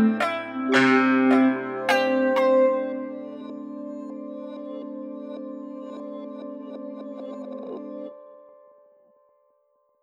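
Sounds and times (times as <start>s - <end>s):
sad saz playing: 0.0s - 3.5s.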